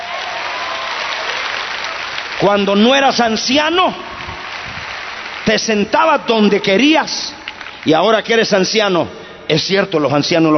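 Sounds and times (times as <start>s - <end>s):
audience applauding: 0.0s - 8.4s
speech: 2.4s - 4.1s, 5.5s - 10.5s.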